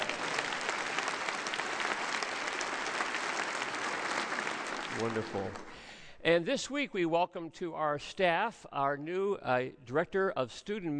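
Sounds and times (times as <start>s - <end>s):
crowd applauding: 0.0s - 5.8s
speech: 5.0s - 10.9s.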